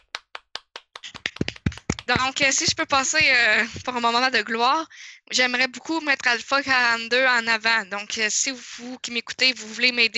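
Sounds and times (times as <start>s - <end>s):
audience clapping: 0.0s - 3.4s
speech: 2.1s - 10.1s.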